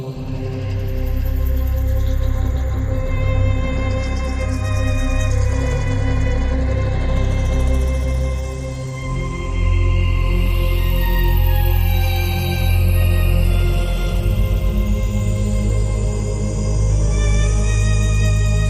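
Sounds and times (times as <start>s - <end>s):
violins: 0.2s - 18.6s.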